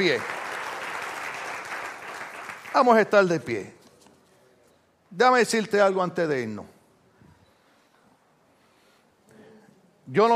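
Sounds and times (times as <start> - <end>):
speech: 0.0 - 0.4, 2.8 - 3.8, 5.1 - 6.7, 10.1 - 10.3
audience applause: 0.0 - 3.0.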